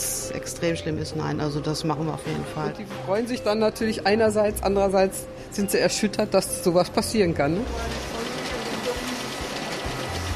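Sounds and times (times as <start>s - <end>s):
speech: 0.3s - 8.1s
printers and copiers running in a copy shop: 5.6s - 10.3s.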